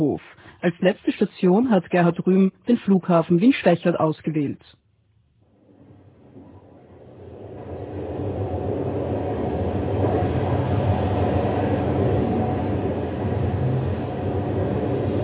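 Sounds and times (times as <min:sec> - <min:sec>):
speech: 0:00.0 - 0:04.8
train travelling on rails: 0:06.2 - 0:15.2.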